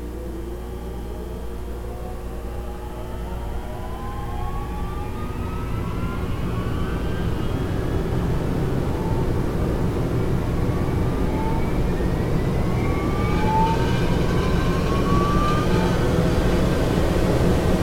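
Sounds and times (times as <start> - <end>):
blowers running: 0.1 - 17.8.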